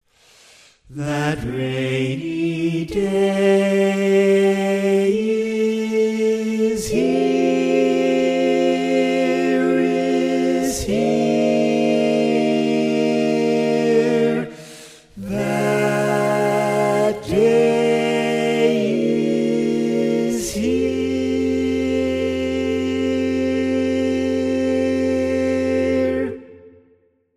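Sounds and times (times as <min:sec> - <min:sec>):
barbershop tenor singing: 0:00.9 - 0:26.6.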